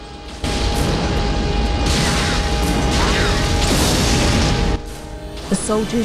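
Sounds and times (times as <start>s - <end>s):
rumbling debris: 0.0s - 6.0s
explosion hitting an apartment building: 0.4s - 4.9s
speech: 5.6s - 6.0s.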